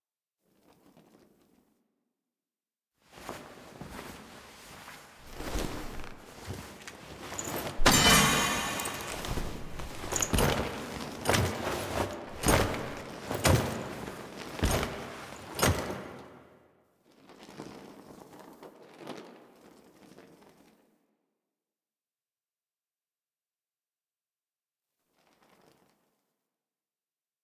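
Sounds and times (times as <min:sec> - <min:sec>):
foley of person standing up: 0:05.2 - 0:16.0.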